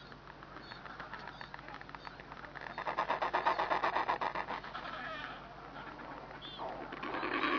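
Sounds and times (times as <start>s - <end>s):
Royal penguin braying calls with harsh pulsed trumpeting: 2.6s - 7.5s.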